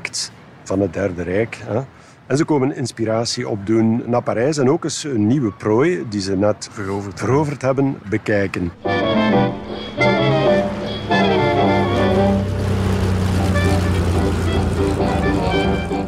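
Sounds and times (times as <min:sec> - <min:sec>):
speech: 0:00.1 - 0:09.9
propeller aircraft engine droning in flight: 0:08.7 - 0:16.0.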